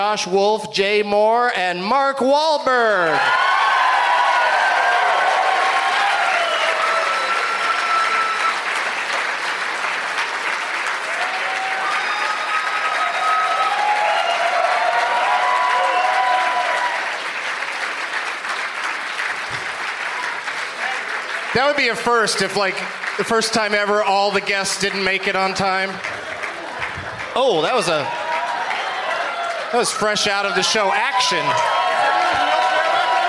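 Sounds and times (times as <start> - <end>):
speech: 0.0 - 3.5, 21.6 - 26.2, 27.4 - 28.2, 29.7 - 31.7
whistles and cheers: 3.2 - 8.8, 11.1 - 17.2, 27.9 - 33.2
audience applause: 3.2 - 33.2.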